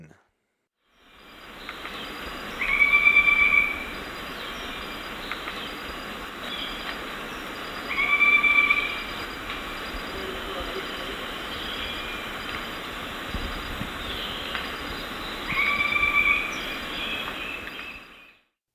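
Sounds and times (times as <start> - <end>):
Northern White-crowned Tapaculo song of clipped notes: 1.3 - 10.1, 13.4 - 18.3.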